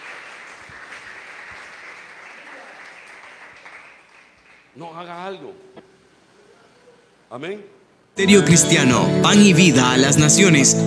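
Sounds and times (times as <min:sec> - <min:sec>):
crowd clapping hands: 0:00.0 - 0:06.4
speech: 0:04.8 - 0:05.9, 0:07.3 - 0:10.8.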